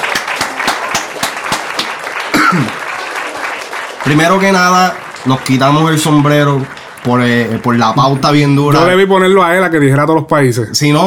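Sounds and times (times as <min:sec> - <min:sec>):
applause: 0:00.0 - 0:08.8
speech: 0:02.5 - 0:02.8, 0:04.0 - 0:11.0.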